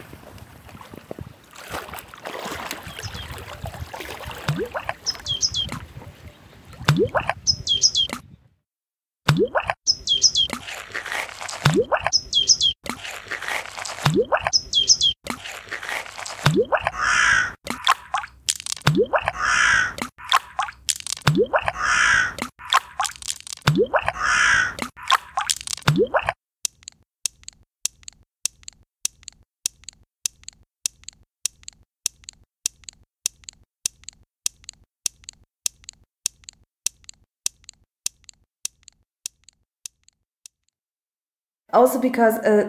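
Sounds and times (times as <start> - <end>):
Danube Island wetlands ambience: 0.0 - 8.3, 9.3 - 26.4
speech: 41.8 - 42.6.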